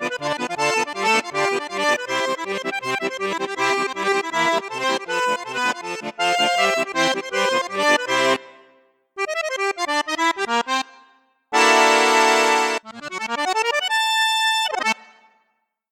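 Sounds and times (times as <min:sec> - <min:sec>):
Cavagnolo professional accordion on bassoon flute and piccolo registers: 0:00.0 - 0:15.9.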